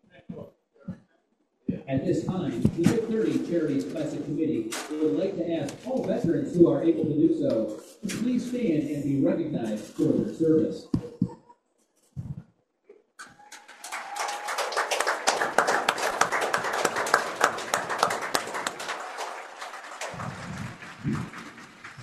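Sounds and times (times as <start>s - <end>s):
speech: 1.9s - 11.0s
crowd applause for veterans: 13.2s - 22.0s.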